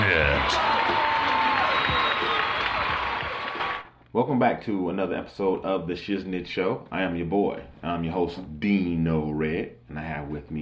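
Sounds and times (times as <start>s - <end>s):
crowd noise: 0.0s - 3.9s
studio audience clapping at Red Rock Studios in Los Angeles: 0.0s - 3.9s
speech: 0.5s - 0.7s, 4.2s - 10.6s.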